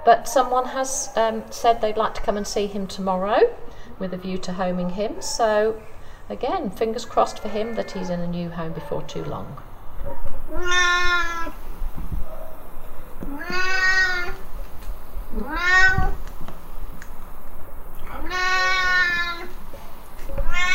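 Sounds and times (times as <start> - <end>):
speech: 0.0 - 11.6
Siamese cat meowing loudly in a cattery: 10.5 - 11.6, 13.2 - 14.4, 15.3 - 16.2, 18.0 - 19.6, 20.4 - 20.7.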